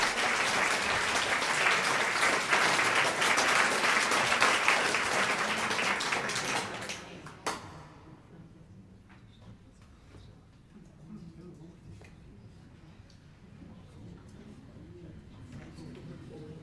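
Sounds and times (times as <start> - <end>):
crowd applauding: 0.0 - 7.3.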